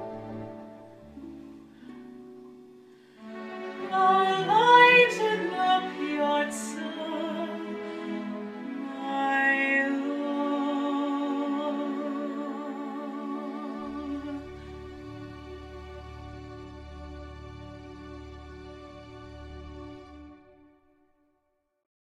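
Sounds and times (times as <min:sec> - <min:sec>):
woman singing musical theatre: 0:03.8 - 0:07.9, 0:08.7 - 0:14.6.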